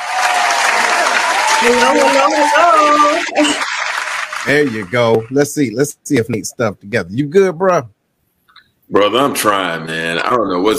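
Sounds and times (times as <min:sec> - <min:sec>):
recorded round of applause: 0:00.0 - 0:05.7
speech: 0:01.6 - 0:08.0, 0:08.9 - 0:10.7.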